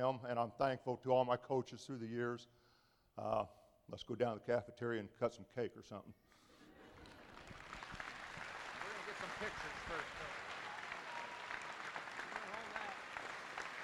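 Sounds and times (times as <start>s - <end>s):
speech: 0.0s - 2.6s, 3.2s - 6.3s, 9.4s - 10.4s
standing ovation applause: 7.0s - 13.8s.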